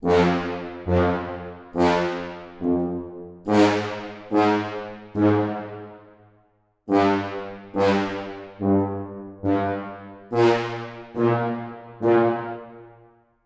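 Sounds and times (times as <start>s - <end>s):
tuba: 0.0s - 13.3s.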